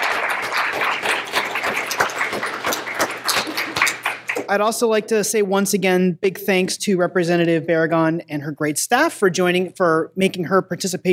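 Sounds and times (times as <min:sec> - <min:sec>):
audience applause for panelists: 0:00.0 - 0:04.5
speech: 0:04.5 - 0:11.1.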